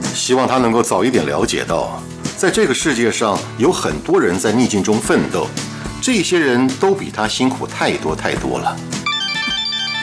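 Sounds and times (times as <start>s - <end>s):
speech: 0.3s - 9.0s
phone ringing: 9.0s - 10.0s.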